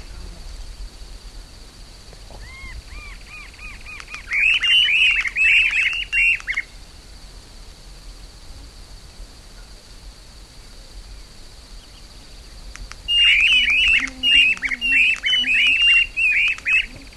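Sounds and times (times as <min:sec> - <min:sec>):
Streamer-tailed Tyrant chattering: 0:02.4 - 0:06.7, 0:13.1 - 0:17.1.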